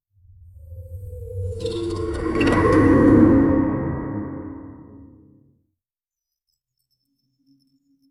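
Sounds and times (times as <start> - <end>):
cosmic portal entering effect: 0.9 - 5.3.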